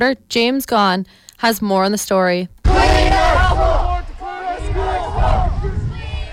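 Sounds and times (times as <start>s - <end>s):
speech: 0.0s - 3.2s
students shouting and chanting at a street protest: 2.6s - 6.3s.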